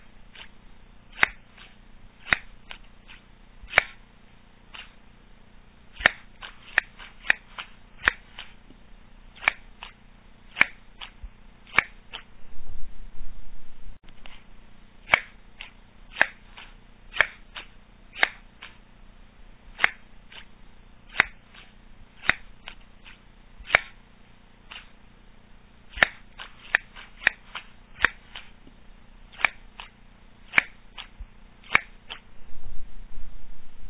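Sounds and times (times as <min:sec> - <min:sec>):
scissors cutting slowly: 0:00.2 - 0:04.1, 0:04.7 - 0:05.0, 0:05.9 - 0:12.3, 0:14.1 - 0:18.8, 0:19.7 - 0:24.0, 0:24.6 - 0:25.0, 0:25.9 - 0:32.3.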